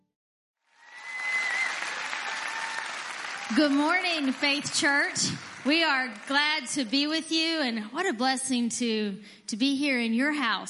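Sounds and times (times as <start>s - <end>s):
church congregation applauding a guest at Faith Church: 0.7s - 6.8s
speech: 3.5s - 10.6s.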